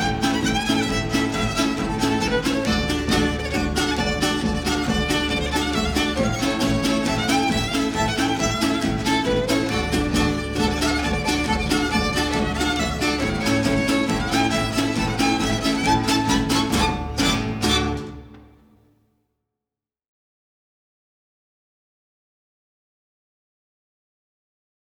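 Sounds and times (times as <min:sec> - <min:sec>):
polka music: 0:00.0 - 0:18.6.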